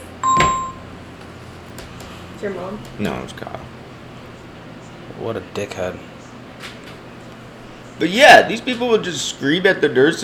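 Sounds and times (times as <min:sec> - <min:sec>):
phone ringer going off: 0:00.0 - 0:00.9
speech: 0:02.4 - 0:03.8, 0:05.2 - 0:06.7, 0:08.0 - 0:10.2.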